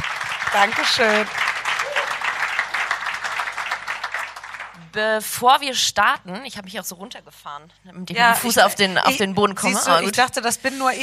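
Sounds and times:
applause: 0:00.0 - 0:05.0
speech: 0:00.5 - 0:01.5, 0:04.9 - 0:11.0.

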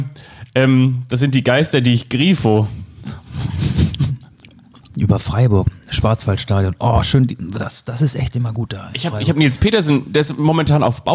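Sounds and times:
speech: 0:00.0 - 0:03.2, 0:05.0 - 0:11.1
person chewing and eating food: 0:03.8 - 0:05.0.

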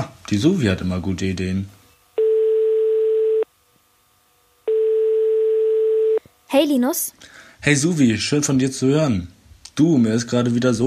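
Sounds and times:
speech: 0:00.3 - 0:01.8, 0:06.5 - 0:10.8
telephone ringing tone during a call: 0:02.2 - 0:03.5, 0:04.7 - 0:06.2.

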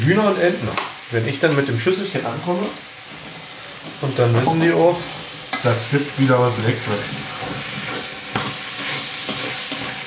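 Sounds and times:
speech: 0:00.0 - 0:03.2, 0:04.0 - 0:07.3
food sizzling in a hot pan: 0:00.0 - 0:10.0
utensil stirring and scraping: 0:06.9 - 0:10.0.

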